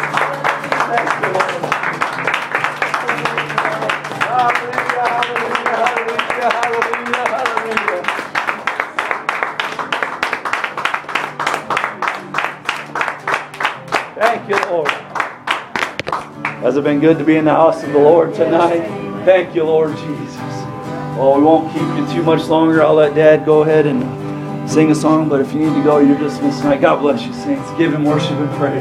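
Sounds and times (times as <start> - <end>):
audience hand clapping: 0.0 - 16.8
speech: 16.8 - 20.4, 21.2 - 28.7.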